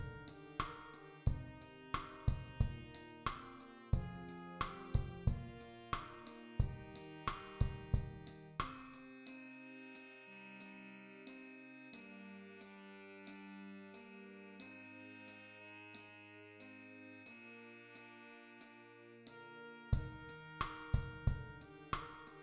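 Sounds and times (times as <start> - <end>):
percussion: 0.0 - 13.4, 14.0 - 18.2.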